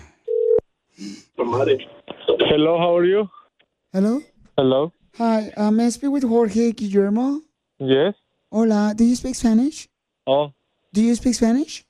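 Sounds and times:
telephone electronic tone: 0.3s - 0.6s
voice-like sound from the phone line: 1.4s - 3.3s
speech: 1.4s - 11.8s.

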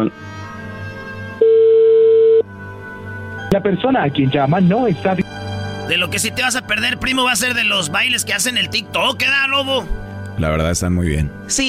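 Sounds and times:
speech: 0.0s - 0.3s, 3.5s - 5.2s, 5.9s - 11.6s
telephone ringback tone on a call: 1.4s - 2.4s.

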